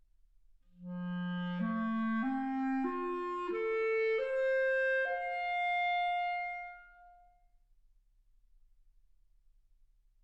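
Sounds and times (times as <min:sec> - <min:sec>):
clarinet: 0:00.8 - 0:07.4.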